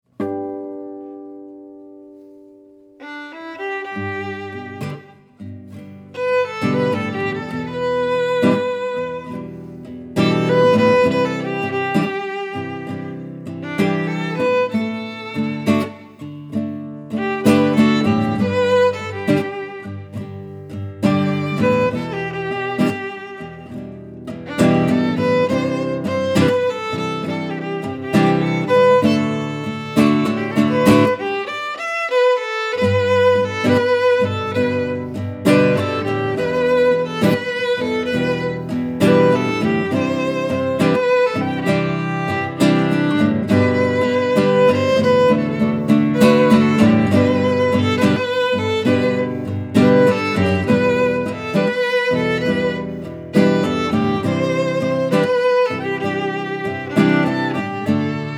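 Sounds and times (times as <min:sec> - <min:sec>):
guitar: 0:00.0 - 0:58.3
violin: 0:03.0 - 0:58.3.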